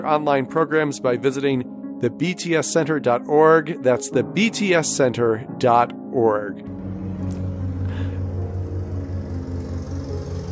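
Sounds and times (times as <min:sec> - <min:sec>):
speech: 0:00.0 - 0:07.4
lawnmower running outside: 0:06.7 - 0:10.4.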